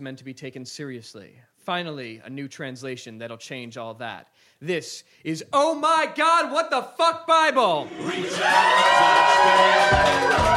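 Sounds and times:
speech: 0.0s - 10.5s
live audience cheering: 7.8s - 10.5s.

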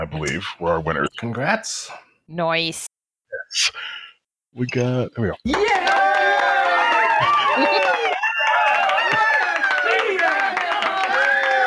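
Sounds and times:
speech: 0.0s - 2.9s, 3.5s - 6.0s, 7.2s - 7.9s
crowd whooping: 5.5s - 11.6s
applause: 5.6s - 11.6s.

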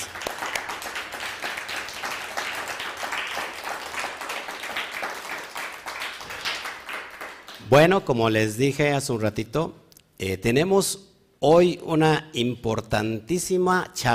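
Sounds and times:
audience applause: 0.0s - 7.6s
speech: 7.7s - 14.1s.

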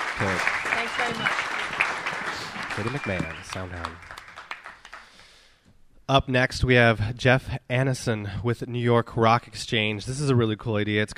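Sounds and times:
audience applause: 0.0s - 5.2s
speech: 0.2s - 1.5s, 2.8s - 4.1s, 6.1s - 11.1s.

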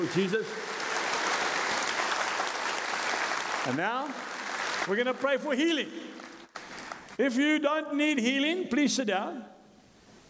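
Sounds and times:
speech: 0.0s - 0.8s, 3.6s - 6.2s, 7.2s - 9.6s
audience clapping: 0.0s - 7.2s.

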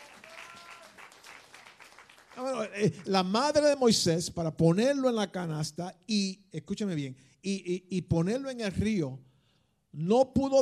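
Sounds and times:
audience applause: 0.0s - 3.2s
people cheering: 0.0s - 3.2s
speech: 2.4s - 9.3s, 10.0s - 10.5s.

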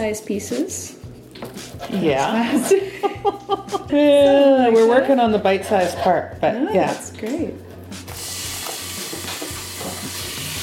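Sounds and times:
speech: 0.0s - 7.6s
laughter: 2.4s - 4.2s
chicken pieces sizzling in a hot pan: 8.2s - 10.6s.

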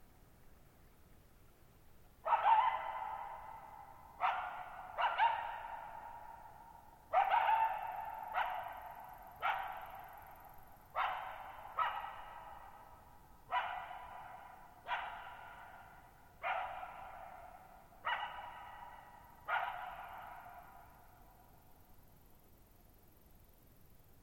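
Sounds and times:
coyote barking: 2.2s - 21.1s.

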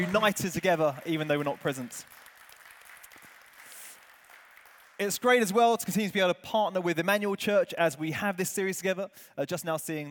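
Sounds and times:
speech: 0.0s - 2.2s, 5.0s - 10.0s
crowd applauding: 0.0s - 5.6s.

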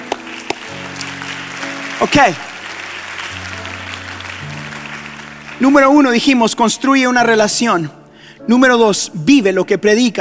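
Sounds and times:
audience applauding: 0.0s - 6.8s
speech: 2.0s - 2.5s, 5.6s - 10.1s.

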